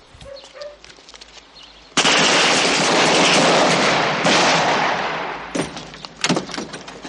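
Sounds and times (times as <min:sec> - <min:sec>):
rifles fired into the air by farm workers: 0:02.0 - 0:06.4.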